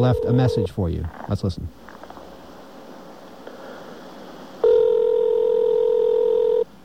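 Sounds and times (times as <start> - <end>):
phone ringback tone before forwarding to voicemail: 0.0 - 0.8, 4.6 - 6.7
speech: 0.0 - 1.8.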